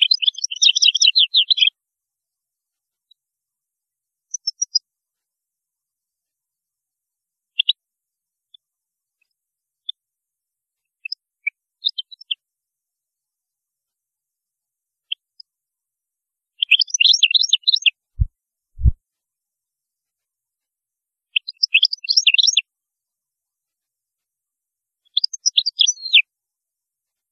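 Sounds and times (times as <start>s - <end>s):
European goldfinch singing: 0.0s - 1.7s, 16.6s - 18.0s, 21.4s - 22.6s, 25.1s - 26.2s
dull low thumps: 18.2s - 19.0s.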